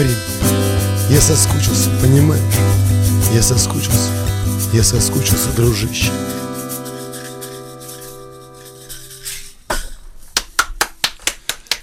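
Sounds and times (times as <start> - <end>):
speech: 0.0 - 0.3, 1.1 - 6.4
hands clapping: 10.3 - 11.8.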